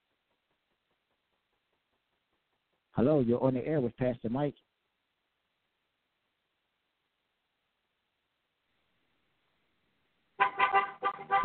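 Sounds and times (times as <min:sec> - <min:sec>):
speech: 0:03.0 - 0:04.7
car horns beeping: 0:10.4 - 0:11.4.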